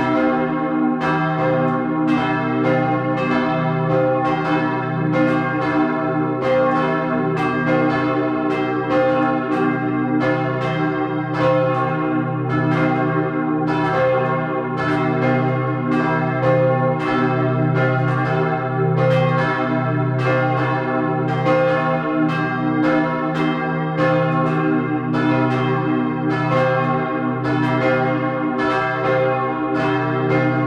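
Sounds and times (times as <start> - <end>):
church bells full peal: 0.0 - 30.6.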